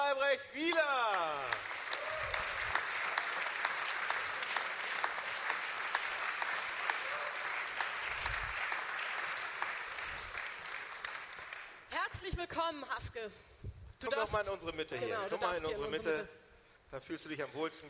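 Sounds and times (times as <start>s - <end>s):
speech: 0.2s - 1.7s, 12.7s - 17.8s
audience applause for arriving guest: 0.7s - 11.8s.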